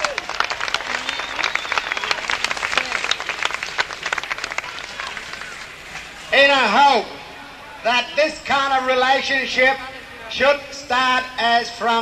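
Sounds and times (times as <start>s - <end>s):
audience applause: 0.0s - 5.8s
speech: 7.8s - 12.0s.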